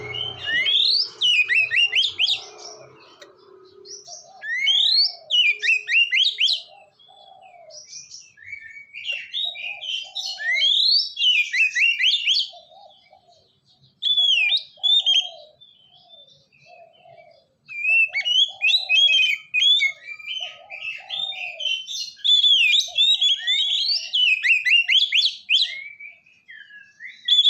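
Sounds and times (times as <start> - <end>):
low hum: 0.0 - 3.9
Oriental magpie-robin singing: 0.0 - 27.4.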